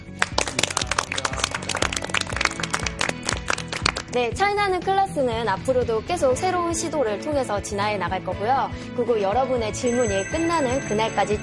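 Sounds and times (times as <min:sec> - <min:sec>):
studio audience applause: 0:00.1 - 0:04.2
speech: 0:04.2 - 0:11.4.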